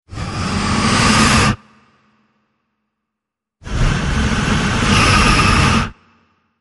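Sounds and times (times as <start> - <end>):
oviraptor inhaling: 0.1 - 1.6, 3.6 - 6.0.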